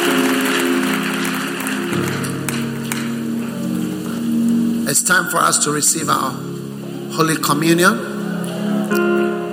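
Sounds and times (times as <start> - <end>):
audience applause: 0.0 - 4.4, 8.2 - 9.4
speech: 5.0 - 8.1.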